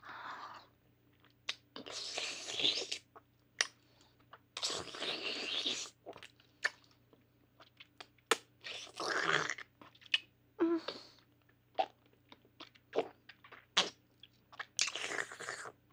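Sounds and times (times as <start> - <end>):
ASMR oral sex mouth sounds: 1.5 - 3.8, 4.5 - 6.9, 7.6 - 11.2, 12.6 - 14.0, 14.5 - 15.9.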